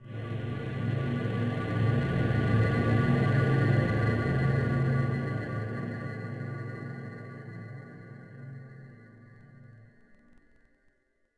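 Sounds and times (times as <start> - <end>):
subway: 0.0 - 9.0.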